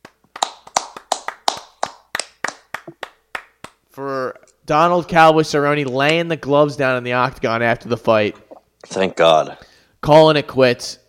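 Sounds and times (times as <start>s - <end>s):
round of applause: 0.0s - 3.8s
speech: 4.0s - 11.0s.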